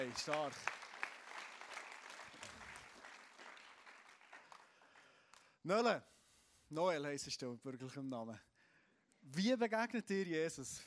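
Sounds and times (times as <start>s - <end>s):
speech: 0.0s - 0.8s, 5.6s - 6.1s, 6.7s - 8.5s, 9.2s - 10.8s
audience applause: 0.0s - 5.2s.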